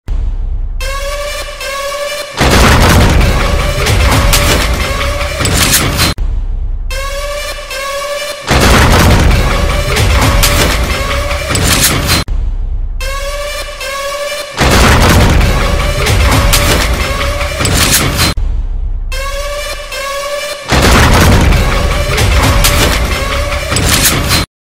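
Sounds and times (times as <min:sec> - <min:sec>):
angry background music: 0:00.1 - 0:24.5.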